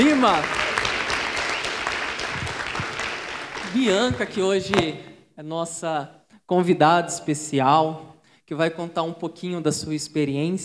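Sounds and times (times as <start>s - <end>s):
audience applause welcoming a guest: 0.0s - 4.4s
speech: 0.2s - 0.6s, 3.7s - 10.6s.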